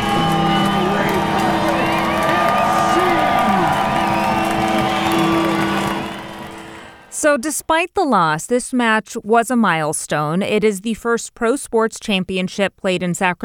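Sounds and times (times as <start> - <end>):
sold-out stadium crowd cheering at a Sacramento Republic FC home match: 0.0 - 7.2
speech: 7.2 - 13.4.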